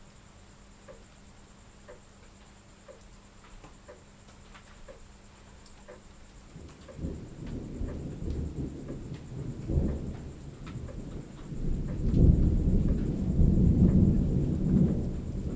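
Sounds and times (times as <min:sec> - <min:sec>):
rainstorm: 0:04.4 - 0:15.5.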